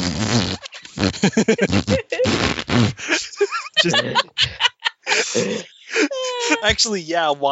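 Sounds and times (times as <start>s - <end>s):
wet spitty lip-fart noises: 0.0s - 3.2s
laughter: 0.0s - 7.5s
person snickering: 0.0s - 7.5s
speech: 1.2s - 5.8s, 6.6s - 7.5s.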